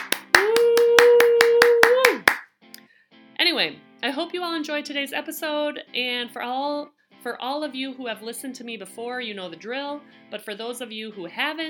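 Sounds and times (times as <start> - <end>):
applause: 0.0 - 2.4
speech: 3.6 - 11.6.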